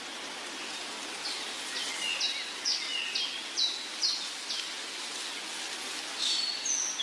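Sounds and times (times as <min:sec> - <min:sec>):
constant hiss: 0:00.0 - 0:07.0
bird song of high chirps: 0:01.2 - 0:04.7, 0:06.2 - 0:07.0.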